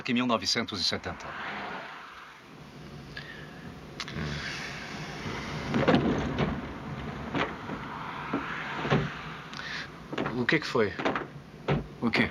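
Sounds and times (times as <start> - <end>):
speech: 0.0 - 1.6, 10.5 - 11.2, 12.0 - 12.2
car road hum: 0.0 - 12.2
car flat tyre thumping in 1970 New York: 5.6 - 12.2.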